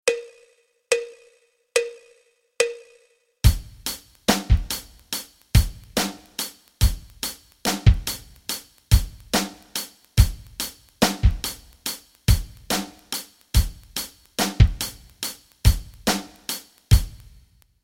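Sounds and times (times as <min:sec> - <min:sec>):
rock rhythms: 0:03.4 - 0:17.5.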